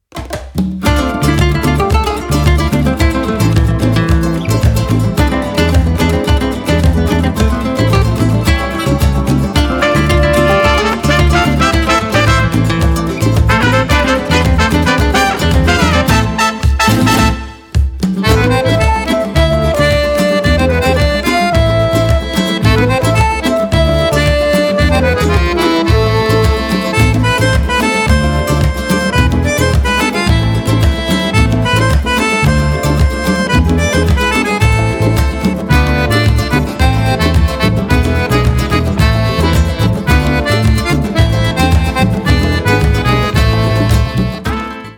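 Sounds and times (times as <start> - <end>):
rumba music: 0.0 - 44.9.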